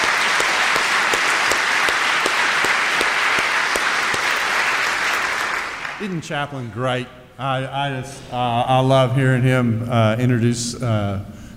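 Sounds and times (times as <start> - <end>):
chapel audience at a seminary applauding to welcome a speaker: 0.0 - 6.3
speech: 6.0 - 11.4.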